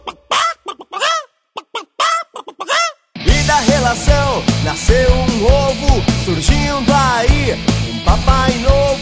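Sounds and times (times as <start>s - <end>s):
person imitating a hen squawking: 0.0s - 3.4s
speech: 3.6s - 9.0s.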